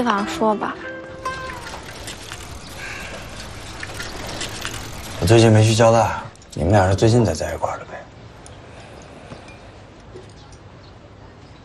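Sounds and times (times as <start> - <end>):
speech: 0.0 - 0.9, 5.2 - 8.1
running tap water while someone washes hands: 1.1 - 7.5.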